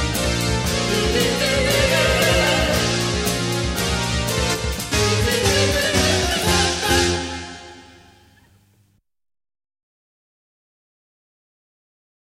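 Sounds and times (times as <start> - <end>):
music noise: 0.0 - 8.5.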